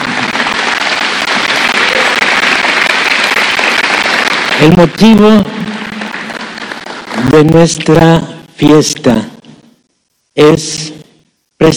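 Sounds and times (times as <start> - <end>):
audience applauding: 0.0 - 7.6
speech: 4.6 - 5.6, 7.2 - 9.4, 10.4 - 11.0, 11.6 - 11.7.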